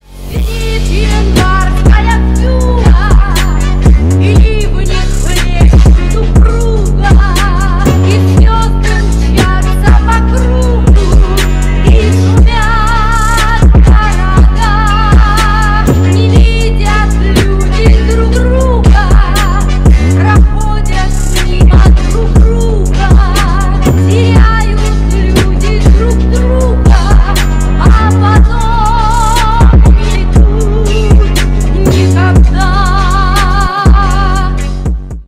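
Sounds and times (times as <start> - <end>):
trap remix: 0.0 - 35.2.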